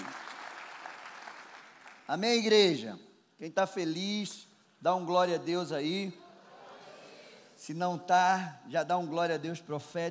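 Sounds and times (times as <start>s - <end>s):
audience applause: 0.0s - 2.1s
speech: 2.1s - 6.2s, 7.7s - 10.1s.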